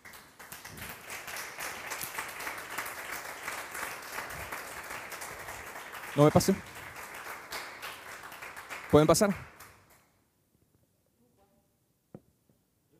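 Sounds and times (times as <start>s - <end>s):
crowd applauding: 0.0s - 10.0s
speech: 6.2s - 6.8s, 8.9s - 9.5s.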